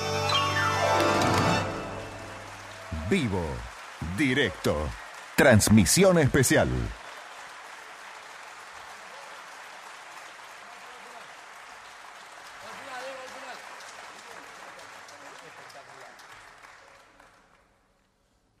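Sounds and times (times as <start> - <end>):
audience applause: 0.1 - 17.9
speech: 3.1 - 7.0.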